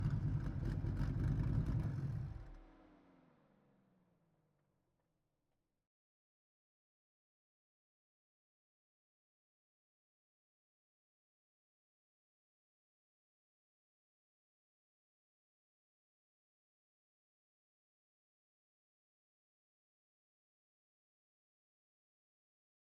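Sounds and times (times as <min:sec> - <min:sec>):
2014 Dodge Viper GTS V10 race engine driving: 0:00.0 - 0:02.8.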